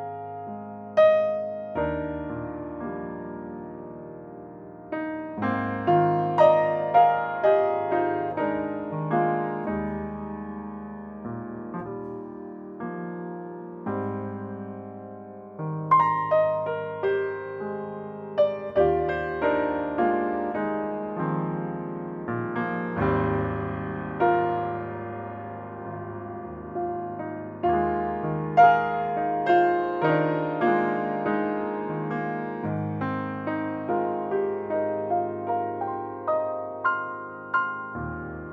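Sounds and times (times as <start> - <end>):
improvised solo piano: 0.0 - 38.5.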